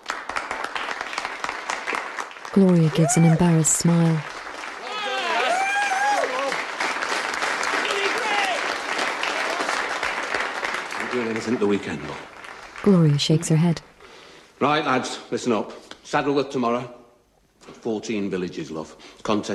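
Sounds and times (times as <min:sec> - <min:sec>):
full applause from a crowd: 0:00.0 - 0:13.5
speech: 0:02.5 - 0:04.4, 0:11.2 - 0:13.9, 0:14.6 - 0:17.0, 0:17.8 - 0:19.5.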